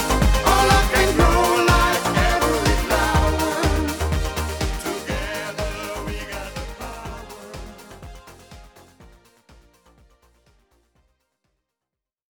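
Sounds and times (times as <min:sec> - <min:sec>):
instrumental music: 0:00.0 - 0:09.1.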